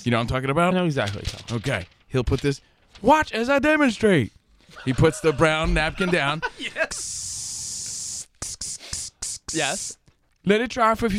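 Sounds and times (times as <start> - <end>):
speech: 0.0 - 7.4, 9.5 - 11.1
laughter: 4.7 - 7.2
waterproofing spray aerosol can hissing: 6.9 - 10.0.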